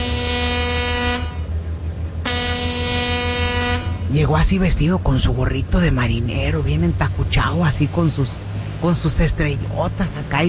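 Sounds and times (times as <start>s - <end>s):
big ship's horn blasts: 0.0s - 4.6s
speech: 4.1s - 10.4s.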